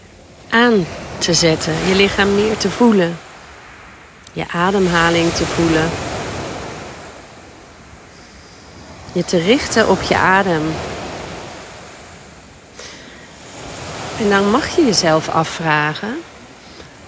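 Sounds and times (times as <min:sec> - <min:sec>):
sea waves on the shore: 0:00.0 - 0:17.0
speech: 0:00.6 - 0:03.2, 0:04.4 - 0:06.0, 0:09.2 - 0:11.0, 0:14.2 - 0:16.3.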